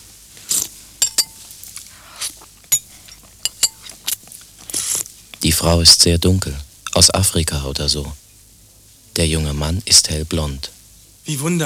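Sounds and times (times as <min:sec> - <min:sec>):
spoons clinking against bowls as two people eat soup in a radio play: 0:00.4 - 0:05.5, 0:06.8 - 0:07.4
speech: 0:05.4 - 0:08.2, 0:09.2 - 0:11.6.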